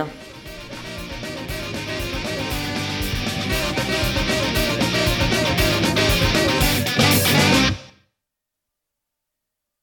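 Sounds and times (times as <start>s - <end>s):
Christmas chorale: 0.1s - 7.9s.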